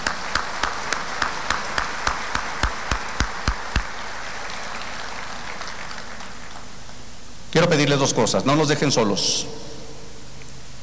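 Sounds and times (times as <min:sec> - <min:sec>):
audience applause: 0:00.0 - 0:06.8
speech: 0:07.6 - 0:09.6.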